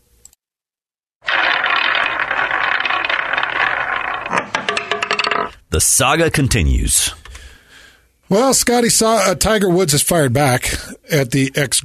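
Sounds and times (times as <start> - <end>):
spinning wheel clicking: 1.3 - 5.6
speech: 5.8 - 7.2, 8.3 - 11.8.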